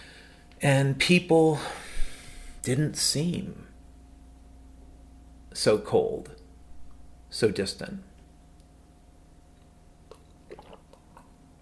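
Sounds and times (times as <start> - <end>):
low steady hum: 0.0 - 11.6
speech: 0.6 - 1.8, 2.6 - 3.7, 5.6 - 6.4, 7.3 - 8.1
soft wet mouth clicks and gulps: 9.6 - 11.4
person sipping water: 10.0 - 11.4.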